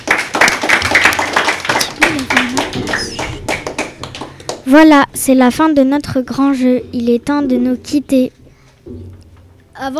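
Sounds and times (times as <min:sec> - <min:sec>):
audience applause: 0:00.0 - 0:04.6
speech: 0:04.7 - 0:09.1, 0:09.8 - 0:09.9.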